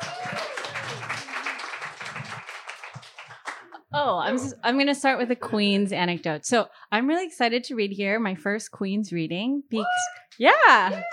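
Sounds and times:
audience applause: 0:00.0 - 0:03.8
speech: 0:04.0 - 0:11.1.

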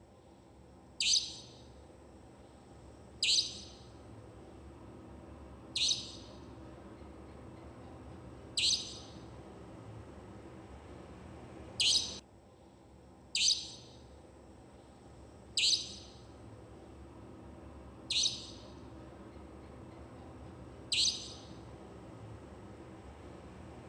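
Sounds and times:
loud bird calls at midnight: 0:01.0 - 0:01.6, 0:03.2 - 0:03.9, 0:05.8 - 0:06.4, 0:08.5 - 0:09.2, 0:11.8 - 0:12.2, 0:13.4 - 0:14.0, 0:15.6 - 0:16.3, 0:18.1 - 0:18.8, 0:20.9 - 0:21.6.

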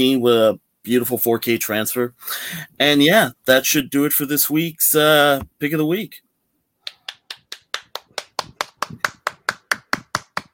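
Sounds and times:
speech: 0:00.0 - 0:06.2
hand clapping: 0:06.8 - 0:10.5.

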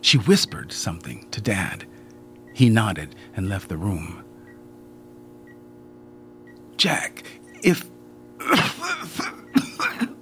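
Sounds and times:
speech: 0:00.0 - 0:01.9, 0:02.6 - 0:04.3, 0:06.8 - 0:07.9
fit of coughing: 0:08.4 - 0:10.1.

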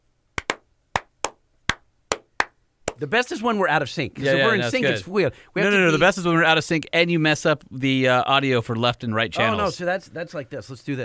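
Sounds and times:
slow clap: 0:00.4 - 0:03.0
speech: 0:03.0 - 0:11.0.

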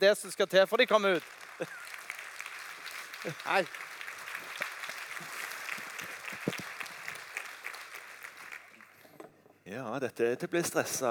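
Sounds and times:
speech: 0:00.0 - 0:02.0, 0:03.2 - 0:03.9, 0:09.7 - 0:11.0
audience applause: 0:00.8 - 0:09.1
laughter: 0:01.5 - 0:02.1.

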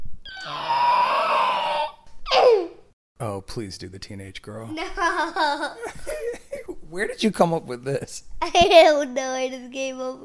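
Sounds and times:
child imitating a raptor call: 0:00.3 - 0:02.8
speech: 0:03.2 - 0:10.2.

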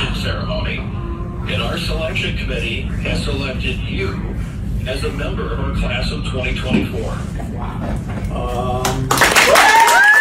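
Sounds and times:
speech: 0:00.2 - 0:00.9, 0:01.5 - 0:09.2
radio audience applause: 0:08.8 - 0:10.2.

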